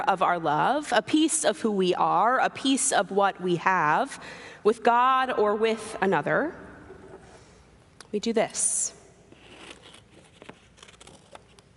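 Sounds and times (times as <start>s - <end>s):
speech: 0.0s - 6.6s, 8.1s - 9.0s
paper crinkling and rustling: 9.4s - 11.7s
scissors snipping paper at a corner: 9.6s - 11.7s.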